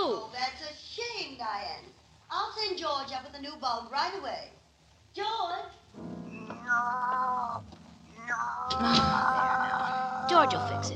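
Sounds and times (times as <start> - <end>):
speech: 2.3 - 4.6, 5.2 - 10.9
cat meowing in the dark: 6.4 - 10.9.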